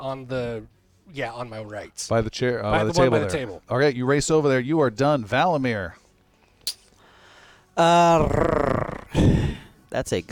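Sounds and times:
speech: 0.0s - 6.0s, 7.8s - 8.6s, 9.2s - 10.3s
voice imitating a tiger's purr: 7.9s - 9.6s.

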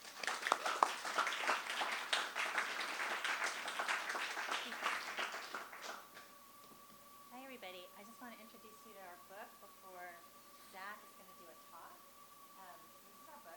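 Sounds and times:
audience applause welcoming authors at a bookstore reading: 0.0s - 6.3s.

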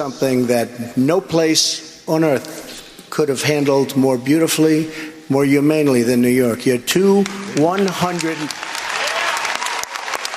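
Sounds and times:
speech: 0.0s - 8.6s
audience clapping during a debate: 7.3s - 10.3s.

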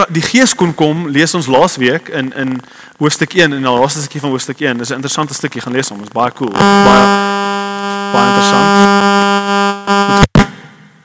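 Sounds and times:
speech: 0.0s - 10.3s
cellphone ringing in a pocket: 6.6s - 7.0s.

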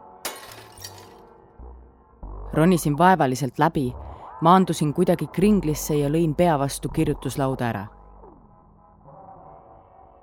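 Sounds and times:
cheap stained-glass window shattering from an elbow strike: 0.3s - 1.2s
glass shards tinkling: 0.3s - 1.2s
speech: 2.6s - 8.0s.

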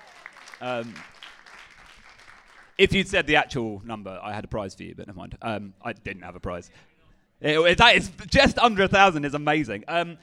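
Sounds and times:
audience round of applause for Rob: 0.0s - 2.8s
speech: 0.6s - 1.2s, 2.8s - 10.2s.

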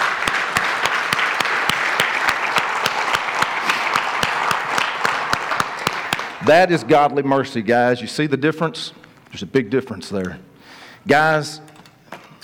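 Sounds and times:
crowd applauding: 0.0s - 6.6s
speech: 6.4s - 11.7s.

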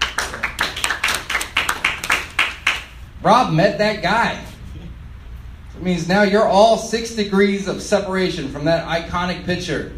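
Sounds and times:
audience clapping: 0.0s - 3.0s
speech: 3.2s - 4.5s, 5.8s - 9.9s.

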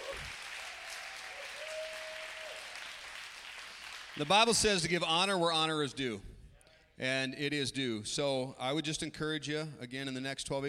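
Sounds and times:
audience applause: 0.0s - 4.8s
speech: 4.2s - 6.3s, 7.0s - 10.6s.

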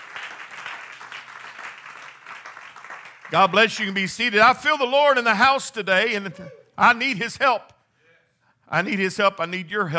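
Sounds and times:
crowd clapping: 0.0s - 4.0s
speech: 3.3s - 7.7s, 8.7s - 9.9s.

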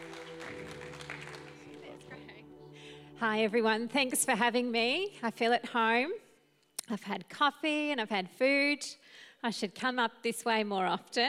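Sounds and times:
audience clapping: 0.0s - 2.8s
sustained musical tone: 0.0s - 5.7s
speech: 3.2s - 6.2s, 6.9s - 11.2s.

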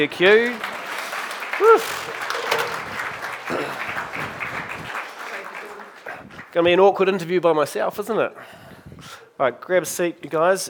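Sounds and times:
speech: 0.0s - 0.7s, 1.6s - 2.4s, 6.6s - 10.6s
crowd clapping: 0.0s - 6.7s
high whoop of cheering: 1.6s - 2.0s.

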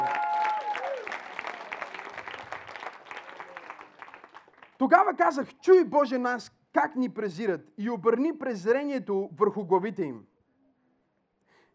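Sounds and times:
audience clapping: 0.0s - 5.1s
speech: 4.8s - 10.3s.

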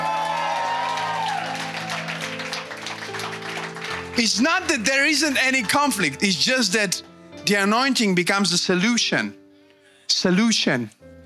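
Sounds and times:
audience clapping: 0.0s - 5.4s
speech: 4.2s - 9.4s, 10.2s - 11.0s.

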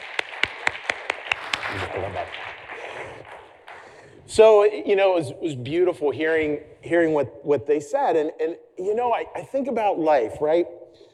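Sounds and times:
crowd applause: 0.0s - 4.0s
evenly spaced claps: 0.0s - 4.0s
speech: 1.7s - 2.6s, 4.3s - 11.1s.

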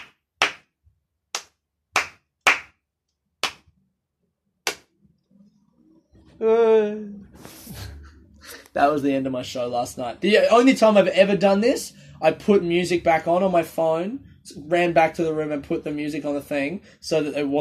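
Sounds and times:
sparse unenthusiastic hand claps: 0.0s - 0.7s, 1.3s - 2.8s, 3.4s - 3.7s, 4.7s - 4.9s
speech: 6.4s - 7.5s, 8.8s - 17.6s.

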